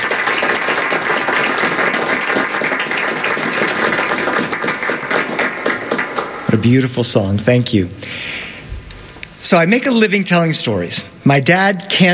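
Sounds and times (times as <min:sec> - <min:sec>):
crowd applause: 0:00.0 - 0:06.9
speech: 0:06.5 - 0:08.4, 0:09.4 - 0:12.1.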